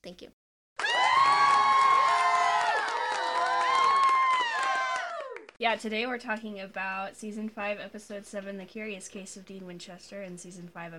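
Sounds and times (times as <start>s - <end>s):
speech: 0.0s - 1.7s, 5.6s - 10.9s
audience clapping and cheering: 0.8s - 5.6s.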